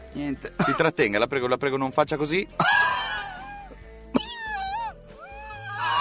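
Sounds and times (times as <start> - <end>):
speech: 0.2 - 2.9
coughing fit: 0.6 - 0.8, 4.1 - 4.5.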